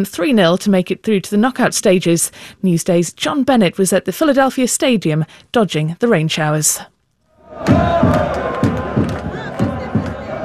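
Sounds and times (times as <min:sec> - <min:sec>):
speech: 0:00.0 - 0:06.9, 0:07.5 - 0:08.6
Iraq football fans chanting at the Philadelphia stadium: 0:07.4 - 0:10.4.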